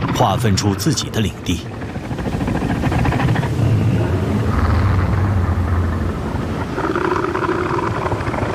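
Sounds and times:
speech: 0.2s - 1.7s
male northern elephant seal threat roar: 3.1s - 8.5s.

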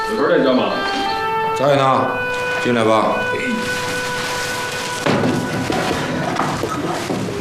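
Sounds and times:
speech: 0.1s - 0.9s, 1.6s - 3.7s
chair being carried and set down: 3.6s - 7.3s.

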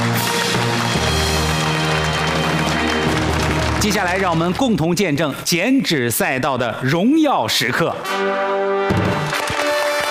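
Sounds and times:
audience applause: 0.0s - 5.0s, 9.0s - 10.0s
speech: 3.8s - 9.4s.

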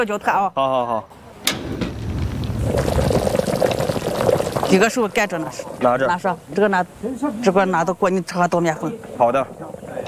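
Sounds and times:
speech: 0.0s - 1.8s, 4.7s - 9.6s
vinegar pouring: 2.0s - 5.9s.

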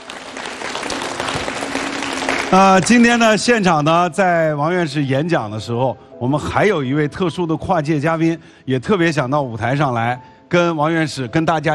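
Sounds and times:
audience applause at a stage event honouring science researchers: 0.0s - 3.3s
speech: 2.5s - 11.7s.

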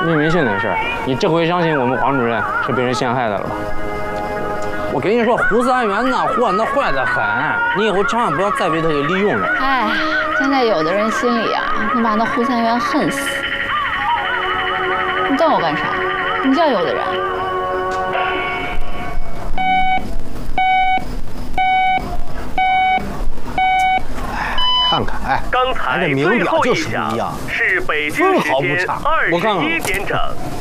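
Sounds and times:
speech: 0.0s - 4.0s, 4.9s - 13.4s, 15.4s - 17.3s, 25.0s - 30.5s
music: 0.0s - 20.9s
Beijing time radio time signal beeps: 19.6s - 24.0s, 24.6s - 25.0s.

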